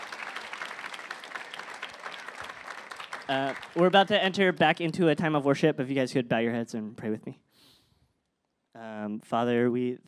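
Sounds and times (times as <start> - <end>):
audience applause: 0.0 - 4.3
speech: 3.3 - 7.4, 9.0 - 10.0.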